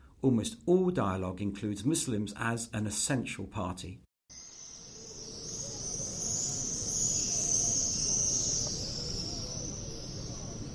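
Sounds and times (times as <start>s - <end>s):
speech: 0.2s - 4.1s
swifts returning to nest near the Western Wall: 4.4s - 10.7s.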